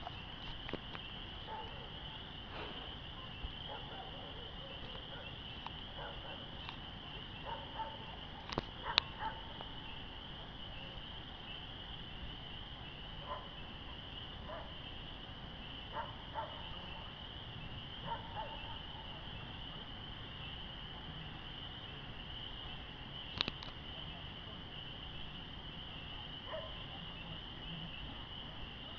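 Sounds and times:
spring peepers calling: 0.0s - 28.9s
dogs: 1.4s - 6.7s, 7.4s - 9.6s, 13.2s - 14.8s, 15.9s - 17.2s, 18.0s - 19.3s, 26.4s - 27.0s.

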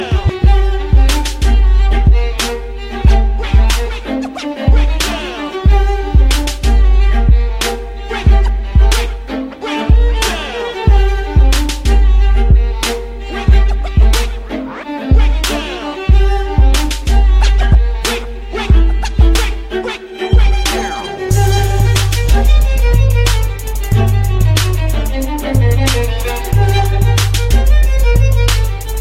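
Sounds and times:
dirty beats: 0.0s - 29.0s.

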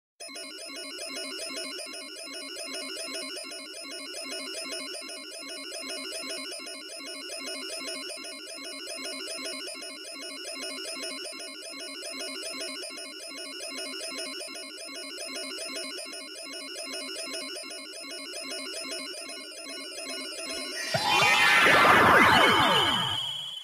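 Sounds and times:
magic sound effect: 20.6s - 23.6s.

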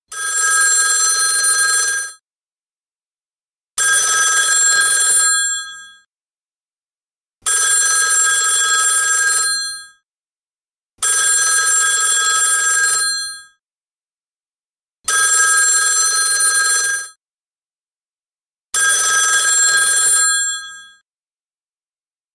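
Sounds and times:
classic telephone ringing: 0.1s - 2.2s, 3.8s - 5.6s, 7.7s - 9.8s, 11.1s - 13.4s, 15.1s - 17.2s, 18.8s - 20.7s.

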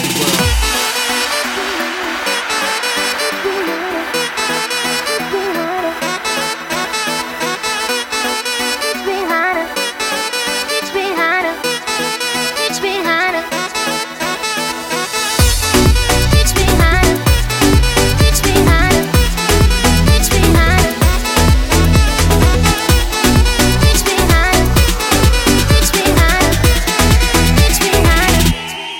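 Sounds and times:
saxophone: 0.0s - 28.9s.

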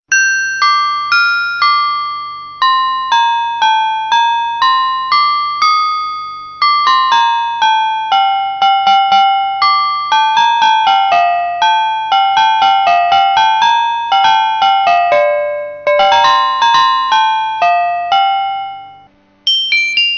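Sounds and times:
piano: 0.1s - 19.1s.

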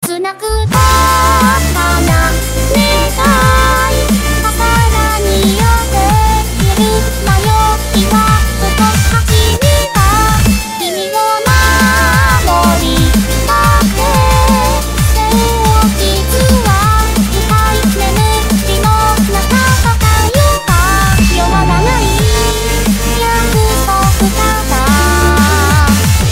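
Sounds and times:
remix music: 0.0s - 26.2s.

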